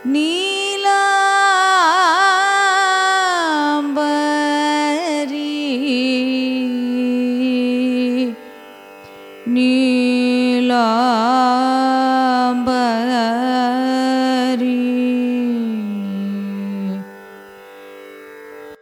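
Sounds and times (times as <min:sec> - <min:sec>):
carnatic music in raga Neelambari: 0:00.0 - 0:18.8.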